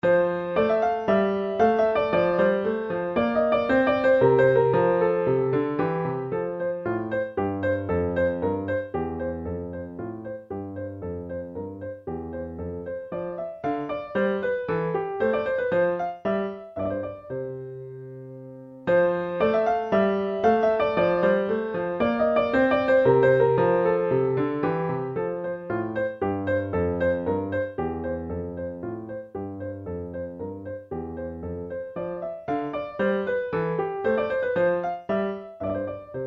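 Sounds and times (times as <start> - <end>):
minuet in F major: 0.0 - 36.2.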